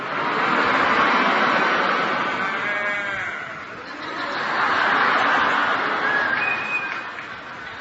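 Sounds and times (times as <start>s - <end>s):
laughter: 0.2s - 7.7s
crowd of voices imitating mooing cattle: 2.2s - 3.7s.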